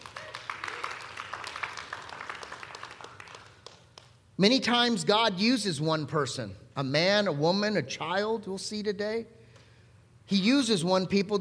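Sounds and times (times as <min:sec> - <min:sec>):
audience cheering and clapping: 0:00.0 - 0:04.0
speech: 0:04.4 - 0:09.4, 0:10.3 - 0:11.3.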